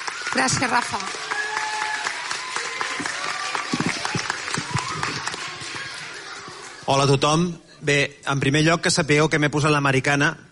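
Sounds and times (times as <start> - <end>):
audience applause: 0.0 - 7.2
speech: 0.4 - 1.4, 6.9 - 10.4.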